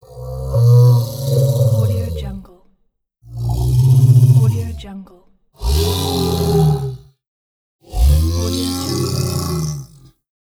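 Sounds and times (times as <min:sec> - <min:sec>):
sad creature growls: 0:00.0 - 0:02.5, 0:03.3 - 0:04.9, 0:05.6 - 0:07.1, 0:07.8 - 0:10.2.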